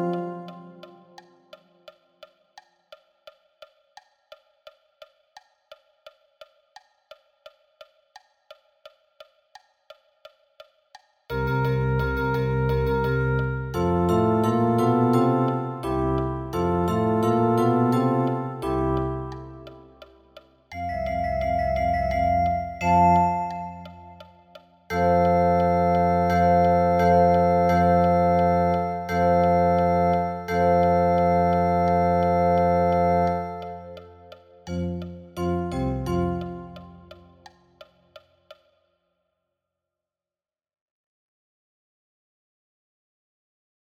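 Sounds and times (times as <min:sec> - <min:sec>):
synthesizer: 0:00.0 - 0:01.2, 0:11.3 - 0:37.4.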